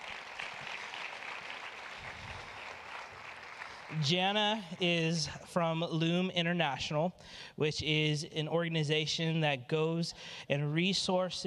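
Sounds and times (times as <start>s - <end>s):
audience applause: 0.0s - 4.2s
speech: 3.9s - 11.4s.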